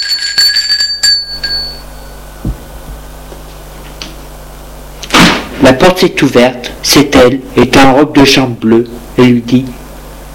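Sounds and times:
doorbell ringing: 0:00.0 - 0:02.4
soft low thump: 0:02.4 - 0:03.0
speech: 0:05.6 - 0:09.8.

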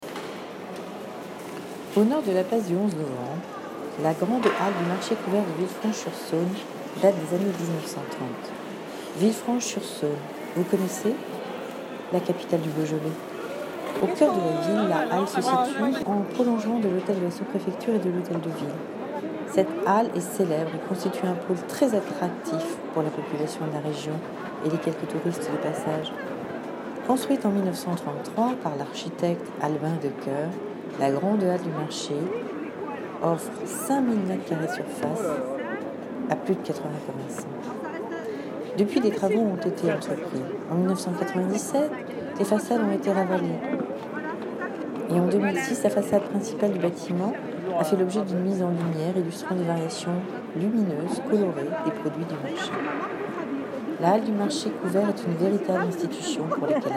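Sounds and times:
market ambience: 0:00.0 - 0:56.9.

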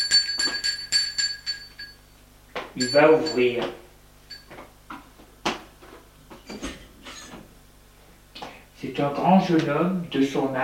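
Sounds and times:
doorbell ringing with bright high metallic dings: 0:00.0 - 0:02.0, 0:02.8 - 0:04.6
speech: 0:02.8 - 0:03.8, 0:09.0 - 0:10.6.

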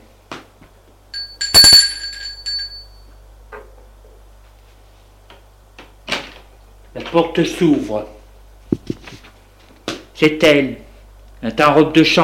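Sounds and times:
doorbell ringing at apartment door: 0:01.2 - 0:03.1
speech: 0:07.0 - 0:08.2, 0:10.2 - 0:12.2.

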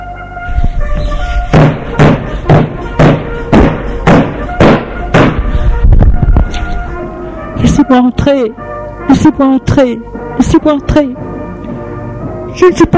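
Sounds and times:
faint music: 0:00.0 - 0:12.9
fist pounding heavily on a door: 0:01.5 - 0:05.4
speech: 0:07.9 - 0:11.3, 0:12.6 - 0:12.9.

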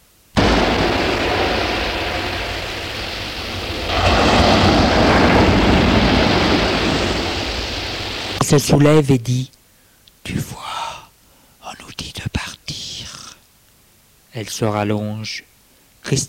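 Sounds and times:
sea noise through an opening door: 0:00.4 - 0:08.9
speech: 0:08.5 - 0:09.6, 0:10.3 - 0:10.6, 0:14.4 - 0:16.2.

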